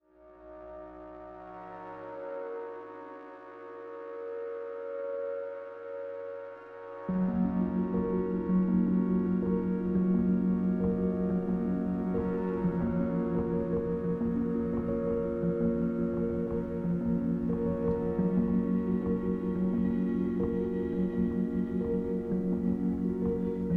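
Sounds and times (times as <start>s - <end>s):
music: 0.0s - 23.7s.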